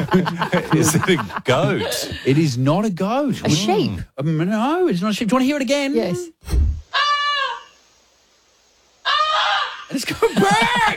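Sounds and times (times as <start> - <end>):
laughter: 0.0 - 2.4, 10.0 - 10.9
speech: 0.1 - 6.7, 9.9 - 10.9
goose honking: 6.9 - 7.8.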